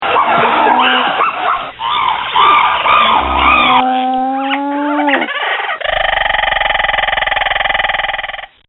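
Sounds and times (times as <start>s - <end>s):
chimpanzee and monkey calls: 0.1s - 8.5s.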